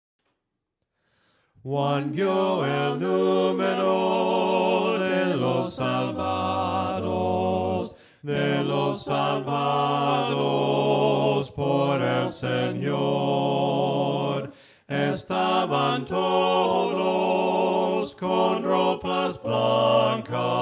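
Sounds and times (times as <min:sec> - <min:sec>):
a cappella hymn singing voices: 0:01.6 - 0:20.5.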